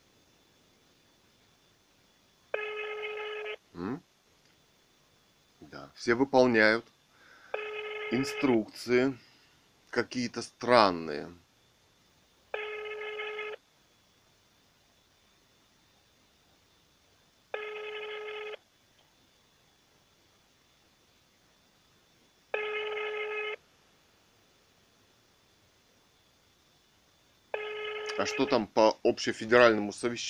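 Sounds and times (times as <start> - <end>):
telephone call ringing tone: 2.5 - 3.6, 7.5 - 8.6, 12.5 - 13.6, 17.5 - 18.6, 22.5 - 23.6, 27.5 - 28.6
speech: 3.8 - 4.1, 5.7 - 7.0, 8.1 - 9.2, 9.9 - 11.4, 28.3 - 30.2.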